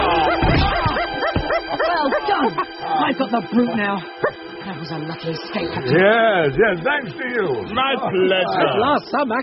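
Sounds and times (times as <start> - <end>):
Snowy the dog barking in a Tintin drama: 0.2 - 2.8, 4.2 - 4.4
speech: 3.4 - 9.4.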